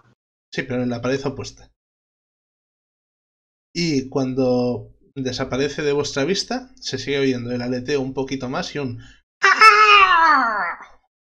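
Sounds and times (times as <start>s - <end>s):
speech: 0.5s - 1.7s, 3.8s - 9.6s
voice imitating a strange creature's squawk: 9.4s - 11.0s.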